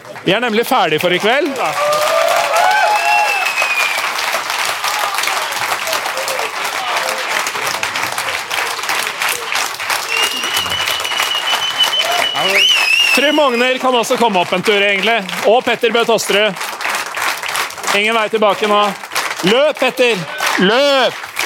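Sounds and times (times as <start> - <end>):
crowd applauding: 0.0 - 21.4
speech: 0.2 - 2.0, 13.2 - 16.7, 17.9 - 21.2
whistles and cheers: 1.7 - 7.4, 9.2 - 13.8.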